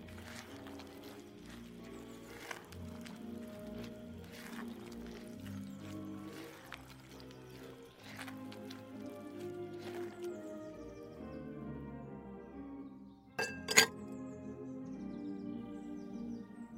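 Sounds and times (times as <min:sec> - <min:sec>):
oldies music with mellow tones and bass line: 0:00.0 - 0:16.4
kitchen clinks of glass and utensils: 0:13.4 - 0:13.9
sharp kitchen clattering: 0:13.4 - 0:13.9.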